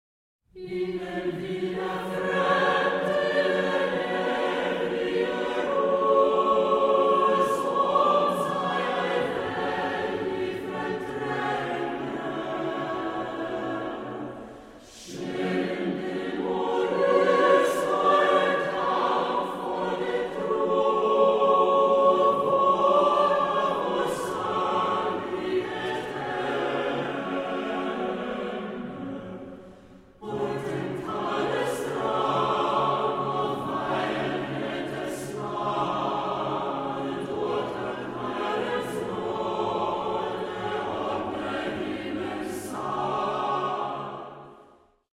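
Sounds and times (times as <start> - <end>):
choir singing: 0.6 - 45.1.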